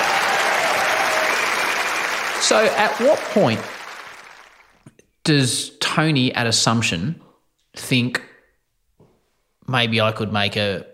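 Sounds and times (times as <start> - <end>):
audience applause: 0.0 - 4.8
speech: 2.4 - 3.8, 5.3 - 7.2, 7.8 - 8.3, 9.7 - 10.9.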